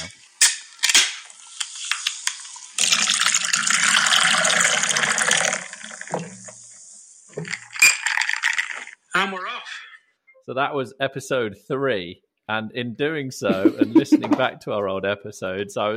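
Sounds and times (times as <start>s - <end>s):
can of beer cracking open: 0.0s - 6.7s, 7.4s - 9.0s
beer pouring into a glass: 1.2s - 9.0s
speech: 10.5s - 15.9s
laughter: 13.4s - 14.6s.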